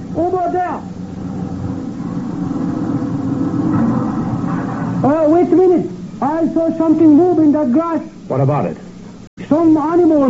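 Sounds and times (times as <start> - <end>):
truck engine rumbling as it drives: 0.0 - 6.4
speech: 0.2 - 1.0, 5.8 - 8.9, 9.5 - 10.2.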